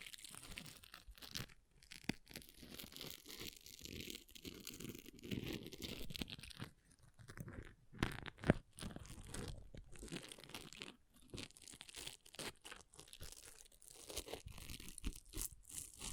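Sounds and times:
scratching on an object: 2.4 - 16.1.

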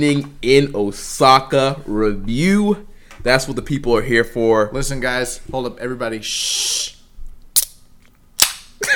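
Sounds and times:
speech: 0.0 - 7.0
quick pitched bursts of sound: 6.3 - 7.0
can cracking open: 7.6 - 8.8.

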